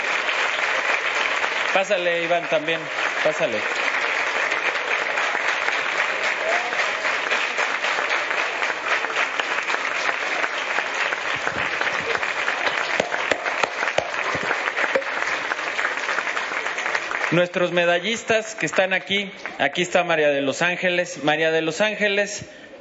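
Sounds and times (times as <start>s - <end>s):
audience applause for medalists: 0.0s - 20.0s
speech: 1.8s - 3.8s, 17.3s - 22.7s.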